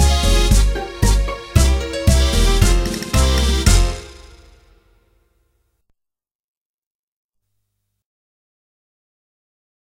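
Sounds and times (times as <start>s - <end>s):
tango music: 0.0s - 4.8s.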